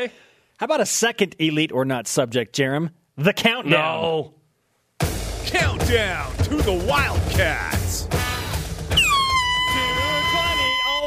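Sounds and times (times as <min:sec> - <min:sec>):
speech: 0:00.0 - 0:04.4, 0:05.5 - 0:08.2
air horn blast: 0:08.1 - 0:11.0.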